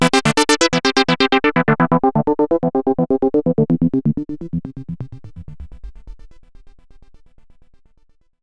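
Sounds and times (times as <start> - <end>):
morphing synth filter: 0.2 - 6.7.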